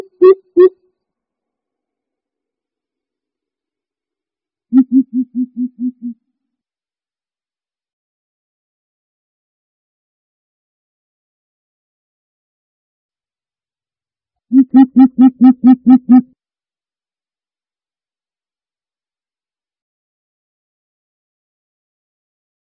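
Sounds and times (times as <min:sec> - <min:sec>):
greater coucal deep hollow hoots: 0:04.8 - 0:06.2, 0:14.6 - 0:16.2.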